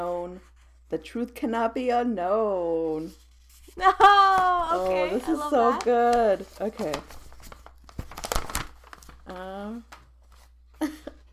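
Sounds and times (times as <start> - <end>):
speech: 0.0 - 3.2, 3.8 - 7.2, 9.3 - 9.9
paper envelope being handled and torn open: 3.2 - 10.6.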